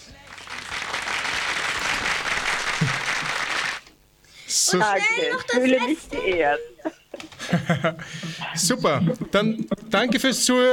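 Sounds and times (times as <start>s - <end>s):
applause: 0.3s - 3.9s
laughter: 2.4s - 3.6s, 6.8s - 10.7s
speech: 4.7s - 6.7s, 7.5s - 10.7s.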